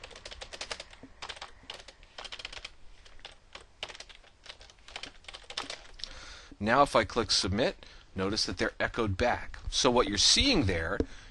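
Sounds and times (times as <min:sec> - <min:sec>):
keyboard typing values into a web form: 0:00.0 - 0:06.0
speech: 0:06.6 - 0:11.2.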